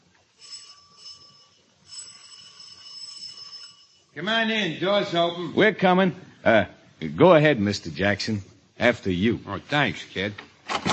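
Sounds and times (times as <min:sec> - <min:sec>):
doorbell ringing: 0:00.4 - 0:04.2
speech: 0:04.2 - 0:10.5.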